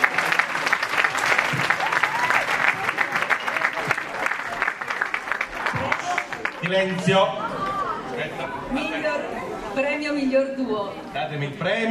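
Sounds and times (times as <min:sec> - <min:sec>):
audience applause: 0:00.0 - 0:08.0
speech: 0:06.6 - 0:07.4, 0:08.2 - 0:11.8.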